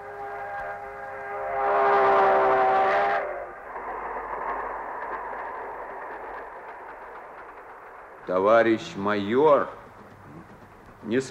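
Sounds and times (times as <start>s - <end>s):
train whistle: 0.0s - 3.7s
train rumbling: 0.0s - 11.2s
speech: 8.3s - 9.8s, 11.0s - 11.2s.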